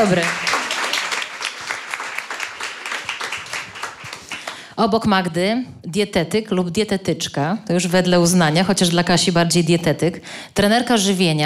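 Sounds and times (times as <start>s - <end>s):
speech: 0.0s - 0.5s, 4.8s - 11.4s
audience applause: 0.0s - 4.6s.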